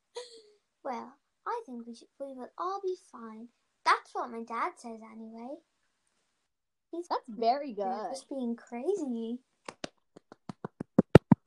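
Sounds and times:
speech: 0.9 - 5.7, 6.9 - 9.8
hands clapping: 9.7 - 11.4.

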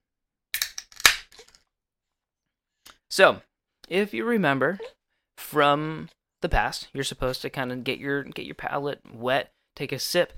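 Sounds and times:
beer can cracking open: 0.6 - 1.6
speech: 3.2 - 10.3.

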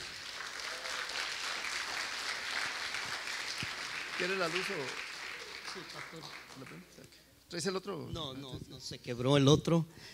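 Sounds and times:
audience applause: 0.0 - 6.9
speech: 4.2 - 5.1, 5.8 - 10.1.

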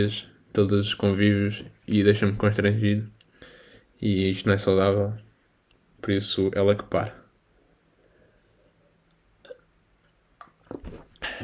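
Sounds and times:
speech: 0.0 - 3.2, 4.0 - 5.2, 6.0 - 7.2
person sipping water: 9.4 - 11.4.

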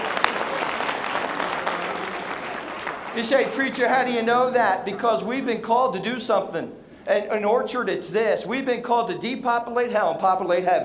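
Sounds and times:
applause: 0.0 - 4.0
speech: 3.2 - 10.8.

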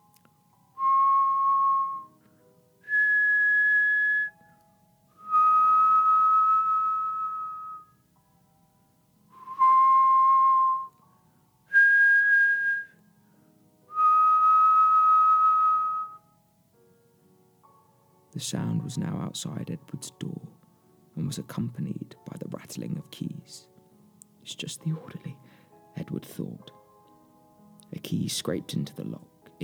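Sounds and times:
whistled three-note phrase of long sustained minor tones: 0.8 - 2.2, 2.8 - 4.4, 5.2 - 8.0, 9.4 - 11.0, 11.7 - 13.0, 13.9 - 16.2
speech: 18.4 - 20.6, 21.2 - 23.7, 24.5 - 25.4, 26.0 - 26.8, 27.9 - 29.6.

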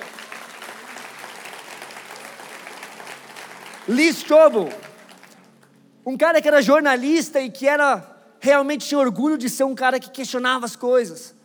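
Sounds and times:
audience applause: 0.0 - 5.6
speech: 3.9 - 4.9, 6.1 - 11.4.

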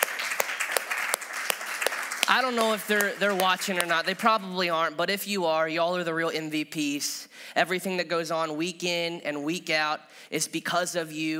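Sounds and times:
crowd applauding: 0.0 - 4.3
speech: 2.3 - 11.3.

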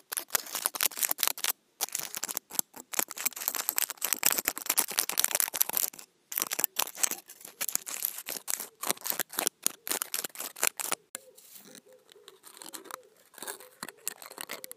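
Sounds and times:
scrunched-up foil rubbed and crinkled between the hands: 0.0 - 14.7.

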